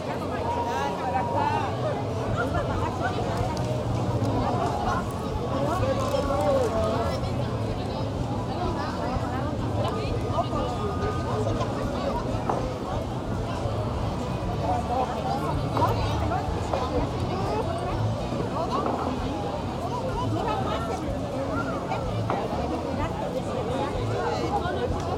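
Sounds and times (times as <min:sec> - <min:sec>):
crowd: 0:00.0 - 0:25.1.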